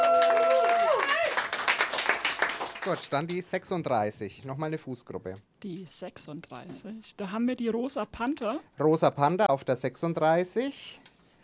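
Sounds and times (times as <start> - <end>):
audience applause: 0.0 - 3.4
speech: 2.8 - 11.1.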